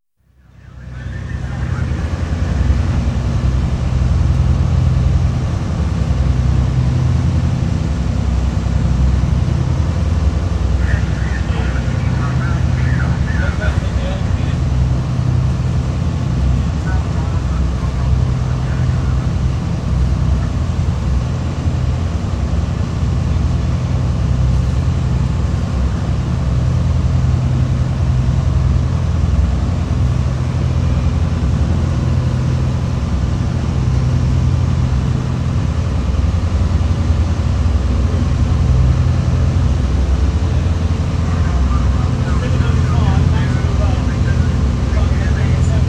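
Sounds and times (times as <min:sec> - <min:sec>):
wheelhouse atmosphere in 48ft 6in Oakley class self-righting lifeboat: 0:00.2 - 0:45.8
indistinct speech: 0:00.4 - 0:02.7, 0:10.8 - 0:14.7, 0:41.2 - 0:45.8
R/T radio chatter: 0:00.5 - 0:02.8, 0:10.8 - 0:14.6, 0:16.8 - 0:19.3, 0:41.2 - 0:45.8.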